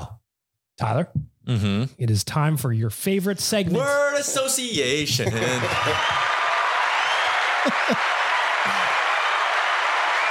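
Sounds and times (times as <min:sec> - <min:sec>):
speech: 0:00.8 - 0:06.4, 0:07.6 - 0:08.9
laughter: 0:03.8 - 0:09.2
applause: 0:05.4 - 0:10.2.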